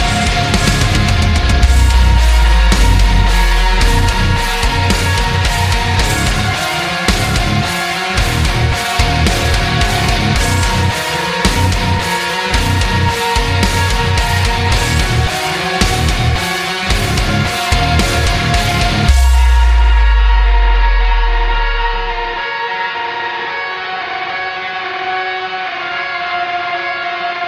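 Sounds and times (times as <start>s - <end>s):
powerful metal music: 0.0s - 26.8s.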